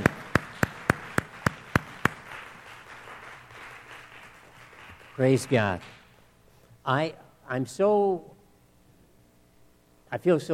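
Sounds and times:
group hand claps in unison: 0.0s - 6.1s
quiet hum: 0.0s - 10.5s
speech: 5.2s - 6.0s, 6.9s - 8.4s, 10.1s - 10.5s.

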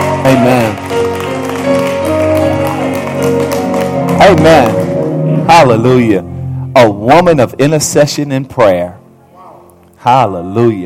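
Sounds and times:
audience applauding: 0.0s - 5.3s
speech: 4.3s - 4.8s, 5.6s - 9.0s, 10.0s - 10.8s.

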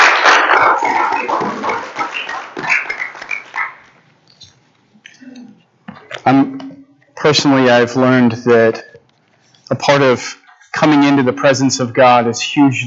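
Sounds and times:
audience hand clapping: 0.0s - 4.0s
speech: 7.3s - 8.9s, 9.7s - 12.8s.

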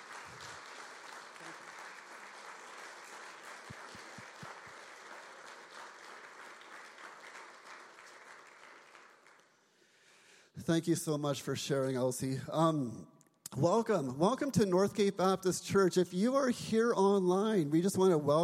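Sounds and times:
audience applause: 0.0s - 9.6s
speech: 10.7s - 18.4s.

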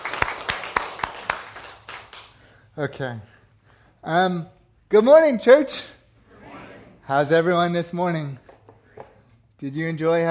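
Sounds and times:
church congregation clapping for a 52nd wedding anniversary: 0.0s - 2.5s
speech: 2.8s - 3.3s, 4.0s - 6.0s, 7.1s - 8.4s, 9.6s - 10.2s.

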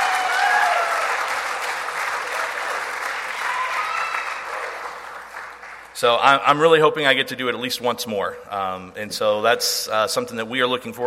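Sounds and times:
crowd applauding: 0.0s - 6.0s
faint whistles or cheers: 3.3s - 4.6s
speech: 6.0s - 11.0s.

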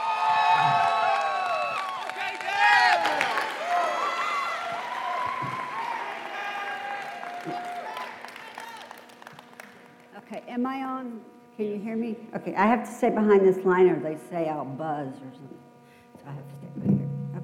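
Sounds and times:
audience applause: 0.0s - 10.2s
speech: 11.6s - 16.9s.

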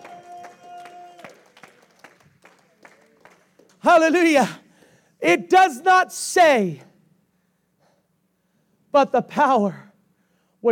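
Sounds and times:
audience clapping hands: 0.0s - 4.4s
speech: 3.8s - 4.6s, 5.2s - 6.9s, 8.9s - 9.8s.

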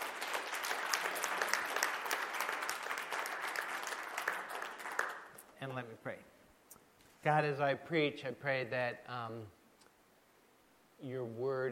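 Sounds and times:
crowd clapping: 0.0s - 5.5s
speech: 5.6s - 6.4s, 7.2s - 9.6s, 11.0s - 11.6s.

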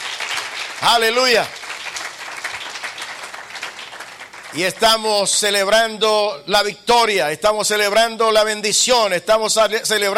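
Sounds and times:
audience applause: 0.0s - 5.0s
speech: 0.8s - 1.6s, 4.5s - 10.1s.

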